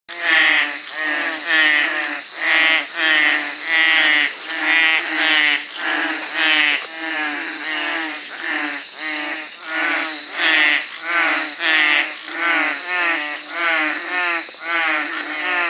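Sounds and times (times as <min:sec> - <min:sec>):
veined tree frog Trachycephalus typhonius giving harsh buzzy pulsed croaks: 0:00.1 - 0:15.6.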